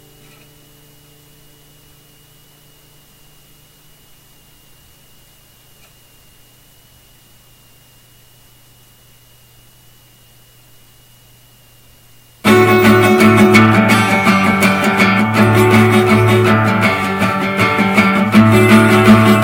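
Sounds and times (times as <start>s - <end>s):
acoustic session music: 12.4s - 19.4s.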